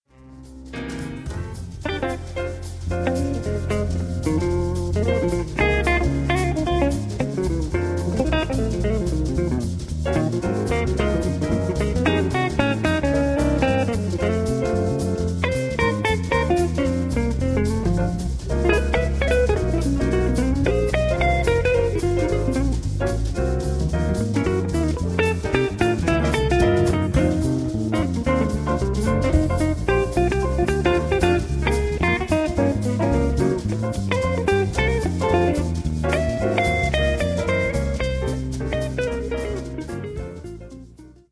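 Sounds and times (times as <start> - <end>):
blues music: 0.0 - 41.3.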